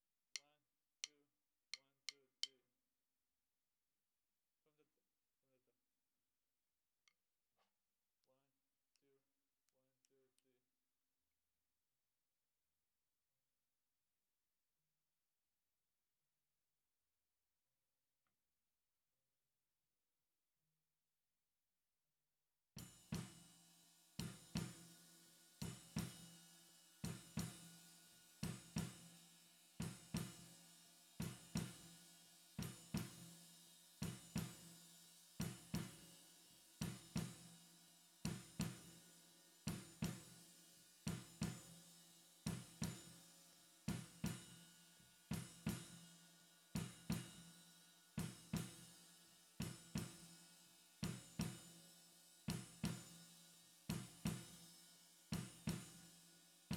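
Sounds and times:
snare drum: 0:22.8 - 0:56.7.

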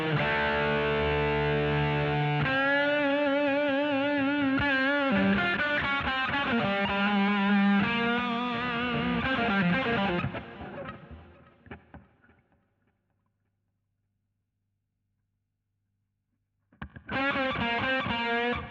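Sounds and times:
guitar solo: 0:00.0 - 0:12.4, 0:16.8 - 0:18.6.

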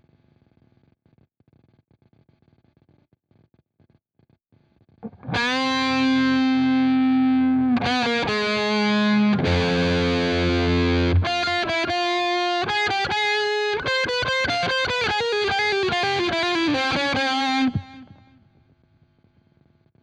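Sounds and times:
guitar: 0:05.0 - 0:18.4.

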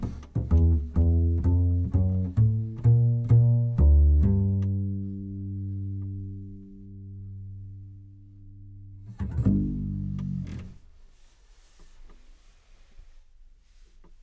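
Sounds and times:
contrabass: 0:00.0 - 0:10.9.

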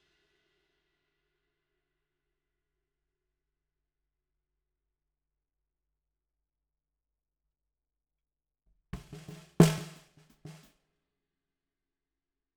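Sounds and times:
snare drum: 0:09.0 - 0:10.7.

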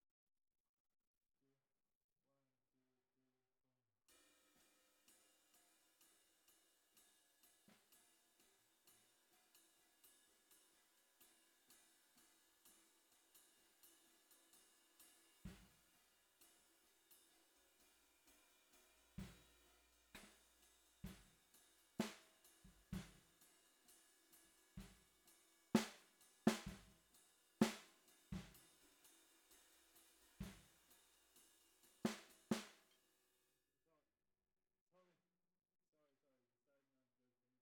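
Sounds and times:
bottom snare drum: 0:15.4 - 0:15.8, 0:19.2 - 0:21.4, 0:22.0 - 0:23.5, 0:24.8 - 0:25.1, 0:25.8 - 0:30.9, 0:31.9 - 0:32.8.

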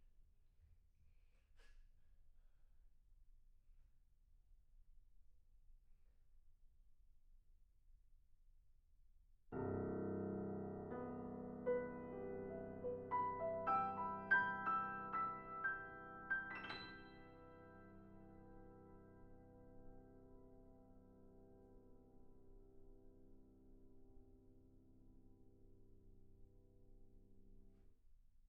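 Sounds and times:
piano: 0:09.5 - 0:28.0.

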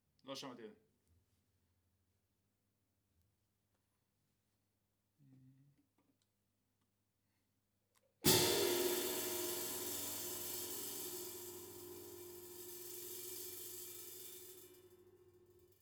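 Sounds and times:
ride cymbal: 0:08.3 - 0:15.8.

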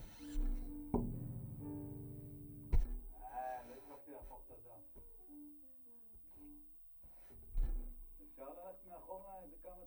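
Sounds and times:
contrabass recorded through direct input: 0:00.0 - 0:03.3.

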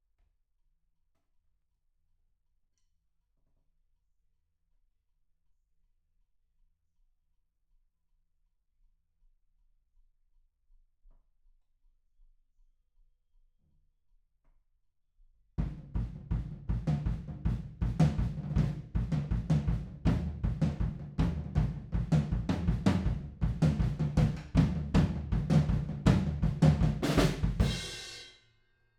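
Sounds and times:
music: 0:15.6 - 0:28.9.

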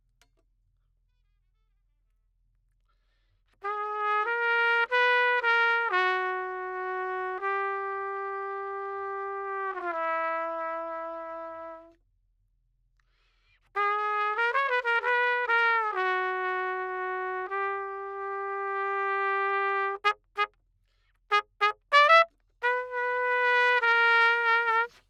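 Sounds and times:
trumpet: 0:03.6 - 0:12.0, 0:13.6 - 0:20.6, 0:21.3 - 0:25.0.

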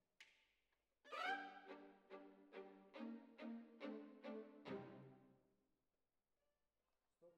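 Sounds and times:
violins: 0:01.1 - 0:05.3.

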